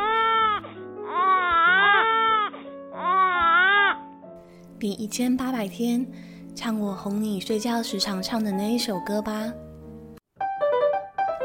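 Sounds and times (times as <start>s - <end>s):
newborn baby crying: 0.0s - 4.1s
speech: 4.8s - 9.6s.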